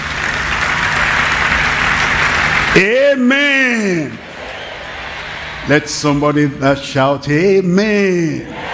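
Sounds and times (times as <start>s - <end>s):
audience clapping: 0.0s - 6.4s
speech: 2.8s - 4.2s, 5.7s - 8.6s.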